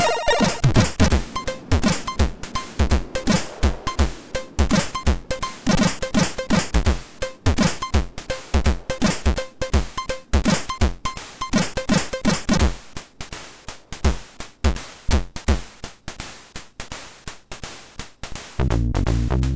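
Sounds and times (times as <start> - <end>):
funky MOS6581 chip music: 0.0 - 12.7, 18.6 - 19.5.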